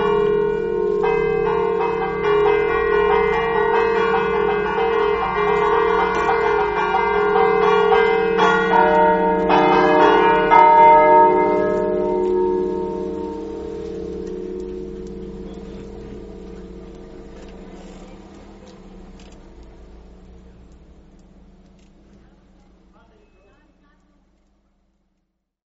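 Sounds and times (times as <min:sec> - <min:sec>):
bells ringing: 0:00.0 - 0:19.2.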